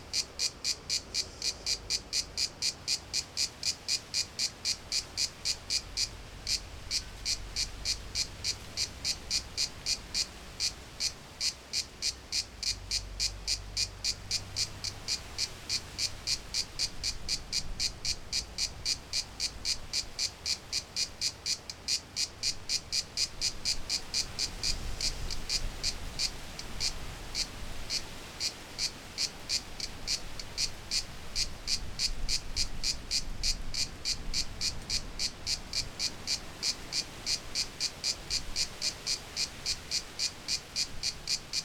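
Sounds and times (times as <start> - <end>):
cicadas in Greece: 0.0 - 41.6.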